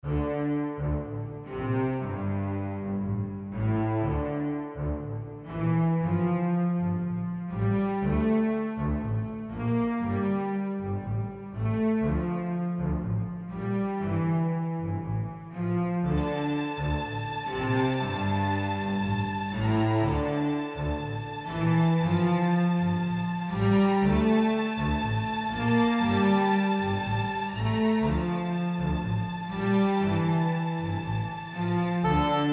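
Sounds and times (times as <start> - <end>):
film noir suspense music: 0.2 - 32.5.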